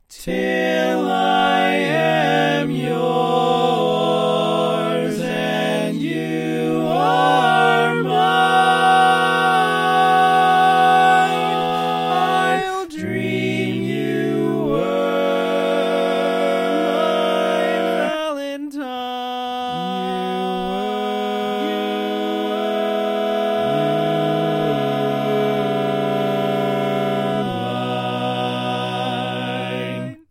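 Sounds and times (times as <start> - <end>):
barbershop quartet singing all parts: 0.2 - 30.2.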